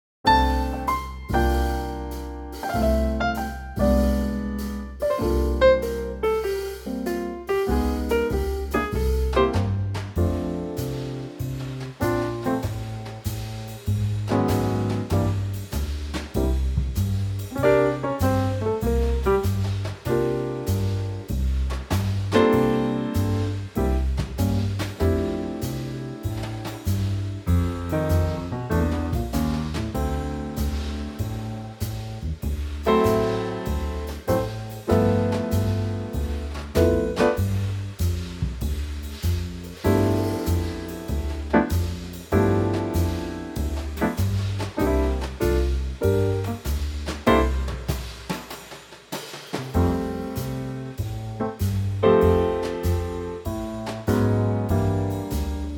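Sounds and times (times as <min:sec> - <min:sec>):
trio music in F: 0:00.2 - 0:55.7.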